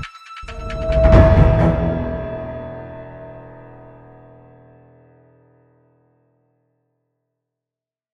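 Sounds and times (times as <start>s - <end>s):
dramatic tension music: 0.5s - 4.4s.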